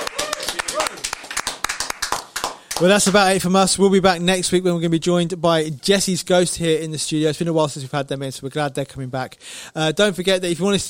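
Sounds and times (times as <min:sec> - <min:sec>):
small group applauding in a studio after a band's performance: 0:00.0 - 0:03.3
speech: 0:02.8 - 0:10.8.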